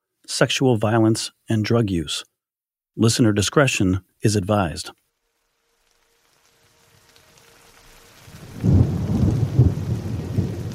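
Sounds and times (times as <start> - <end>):
speech: 0.3 - 2.3, 3.0 - 5.0
drizzling rain on Larch Mountain: 4.5 - 10.7.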